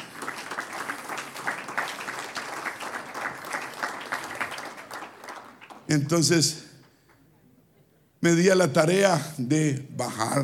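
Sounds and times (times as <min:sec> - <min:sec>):
audience applause: 0:00.0 - 0:05.9
speech: 0:05.9 - 0:06.7, 0:08.2 - 0:10.4.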